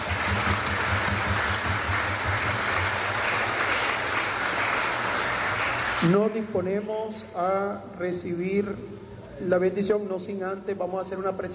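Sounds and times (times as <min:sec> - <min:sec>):
audience applause: 0:00.0 - 0:06.4
speech: 0:06.0 - 0:11.5.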